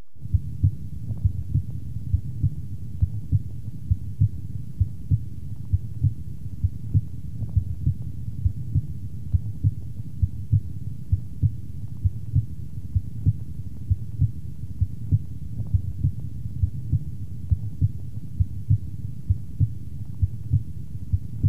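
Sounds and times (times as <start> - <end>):
soft hum: 0.0 - 21.4
heart sounds through a stethoscope over the pulmonary valve area: 0.2 - 21.4.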